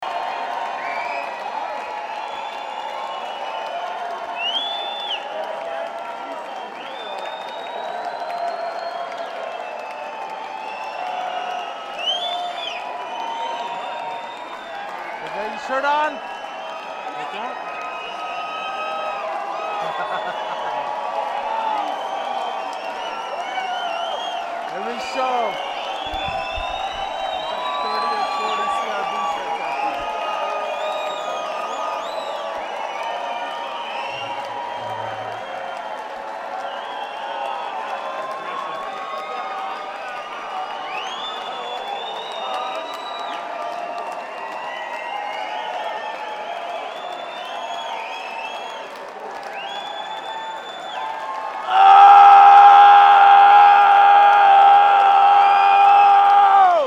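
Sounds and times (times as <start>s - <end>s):
crowd calling for encore: 9.0s - 48.7s, 49.3s - 56.8s
laughter: 19.7s - 21.3s.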